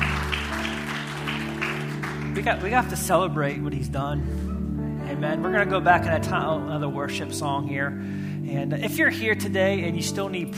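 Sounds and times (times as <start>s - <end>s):
applause: 0.0s - 2.8s
speech: 2.4s - 4.5s, 5.1s - 10.5s.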